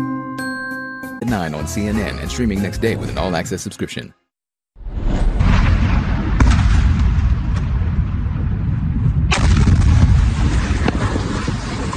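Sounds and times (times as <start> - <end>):
speech: 1.2 - 4.2
explosions from an Iranian missile strike in Jordan: 4.8 - 11.9.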